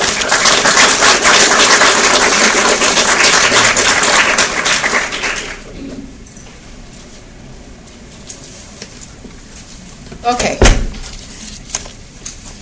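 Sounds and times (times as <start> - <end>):
audience applause welcoming a dean and a professor: 0.0 - 5.7.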